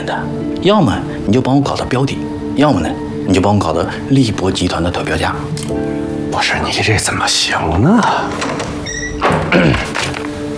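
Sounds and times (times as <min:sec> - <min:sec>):
speech: 0:00.1 - 0:10.2
door opening with creak: 0:08.0 - 0:10.5.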